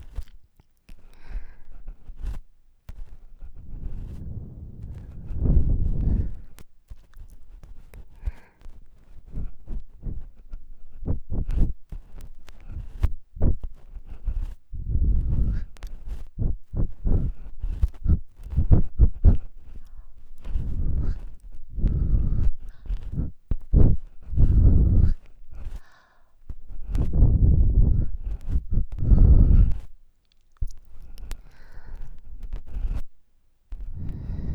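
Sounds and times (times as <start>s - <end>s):
ear cleaning sounds: 0.0s - 30.0s, 30.6s - 34.5s
ear blowing left and right: 3.5s - 6.6s, 14.7s - 25.8s, 26.5s - 29.9s, 33.8s - 34.5s.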